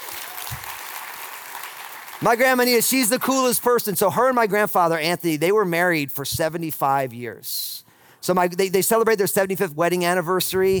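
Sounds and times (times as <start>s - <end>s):
audience round of applause: 0.0s - 3.3s
speech: 2.2s - 10.7s.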